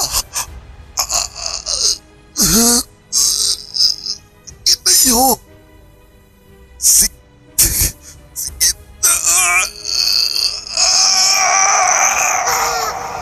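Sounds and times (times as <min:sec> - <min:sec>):
person sobbing and wailing after a friend's death: 0:00.0 - 0:05.4, 0:07.6 - 0:13.2.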